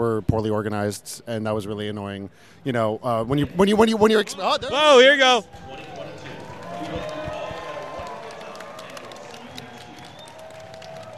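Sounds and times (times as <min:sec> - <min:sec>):
speech: 0:00.0 - 0:05.9
large convention crowd cheering: 0:04.1 - 0:11.1.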